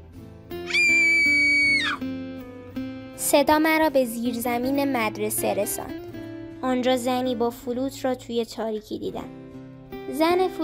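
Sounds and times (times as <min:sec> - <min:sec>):
person screaming: 0:00.7 - 0:02.0
speech: 0:03.2 - 0:06.0, 0:06.6 - 0:09.4, 0:10.1 - 0:10.6.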